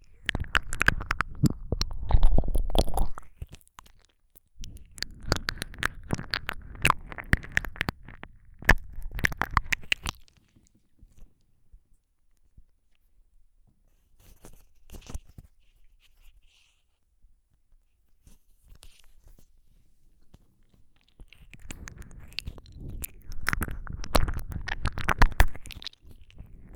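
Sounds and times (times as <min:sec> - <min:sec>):
various ASMR ear licking sounds: 0:00.0 - 0:10.4, 0:21.1 - 0:26.7.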